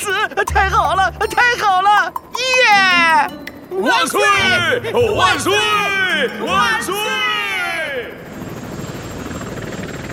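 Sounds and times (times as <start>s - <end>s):
speech: 0.2s - 7.4s
helicopter flying: 3.8s - 10.1s.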